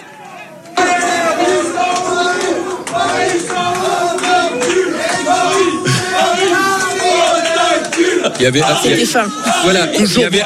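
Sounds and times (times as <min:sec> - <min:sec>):
football fans chanting in a bar: 0:00.0 - 0:10.4
people shouting and clapping: 0:00.0 - 0:10.4
laughter: 0:00.8 - 0:10.4.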